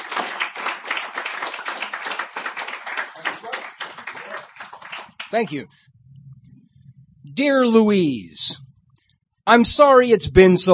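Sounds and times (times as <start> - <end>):
audience applause for poet: 0.0 - 5.6
speech: 5.3 - 5.9, 7.4 - 8.6, 9.5 - 10.7.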